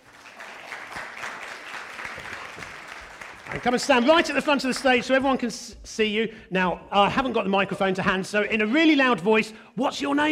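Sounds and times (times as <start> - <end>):
audience applause: 0.0 - 5.0
speech: 3.5 - 10.3.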